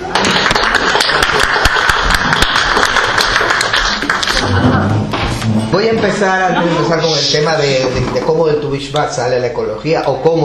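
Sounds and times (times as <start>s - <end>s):
audience applause: 0.0s - 4.7s
speech: 5.7s - 10.4s.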